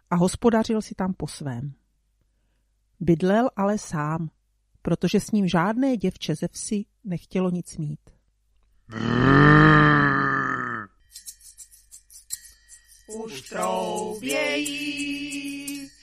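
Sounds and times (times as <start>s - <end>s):
speech: 0.1s - 1.8s, 3.0s - 8.2s, 8.9s - 10.0s, 13.1s - 15.7s
red deer stag roaring during the rut: 8.9s - 10.9s.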